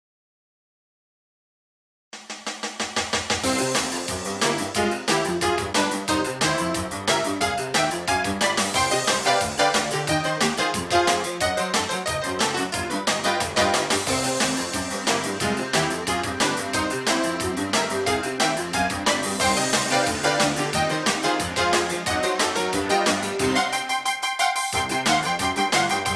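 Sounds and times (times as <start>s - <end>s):
music: 2.2s - 26.1s.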